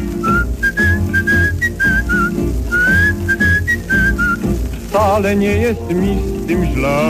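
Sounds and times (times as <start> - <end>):
whistled melody: 0.0 - 4.6
steady rhythmic instrumental accompaniment: 0.0 - 7.0
speech: 5.2 - 7.0.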